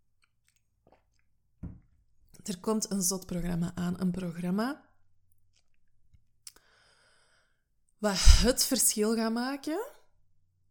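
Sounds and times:
person drinking and gulping: 0.2 - 1.9
speech: 2.4 - 4.9, 8.0 - 10.0.

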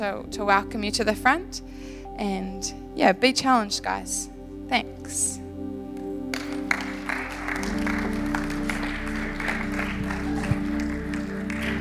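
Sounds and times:
speech: 0.0 - 5.4
sustained musical tones: 4.3 - 11.7
audience applause: 6.3 - 11.7.

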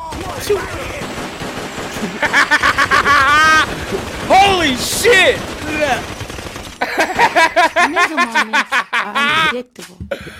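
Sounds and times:
gunshots: 0.0 - 7.7
speech: 0.4 - 1.0, 4.6 - 6.1, 7.0 - 10.3
laughter: 1.9 - 5.0, 6.8 - 9.7.

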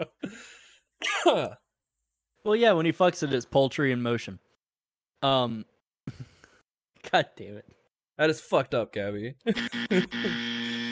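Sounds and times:
speech: 1.0 - 1.6, 2.4 - 4.4, 5.2 - 6.3, 7.0 - 10.6
buzzer sound effect: 9.5 - 10.9.

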